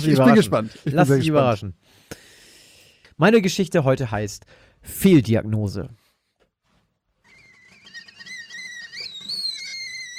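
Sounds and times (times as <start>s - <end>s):
speech: 0.0s - 2.0s, 3.2s - 6.0s
tea kettle whistling shrilly: 7.3s - 10.1s.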